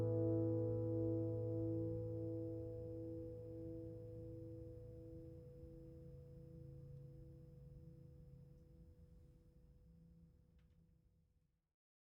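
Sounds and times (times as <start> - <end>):
guitars: 0.0 - 4.1.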